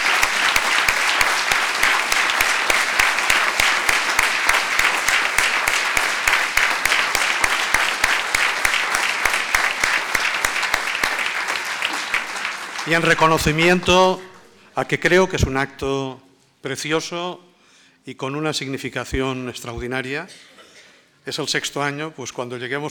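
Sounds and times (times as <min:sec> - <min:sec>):
audience applause: 0:00.0 - 0:14.1
speech: 0:12.9 - 0:20.5, 0:21.2 - 0:22.8.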